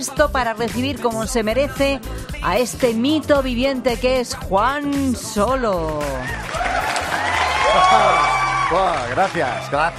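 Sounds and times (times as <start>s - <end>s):
speech: 0.0s - 6.8s, 7.7s - 9.9s
applause and cheering: 6.0s - 9.9s.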